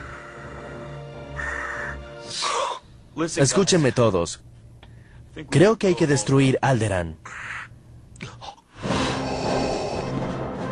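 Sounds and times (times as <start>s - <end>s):
voice imitating heavy mechanical respirator breathing: 0.0s - 3.8s, 7.2s - 10.2s
speech: 3.2s - 4.5s, 5.4s - 7.6s.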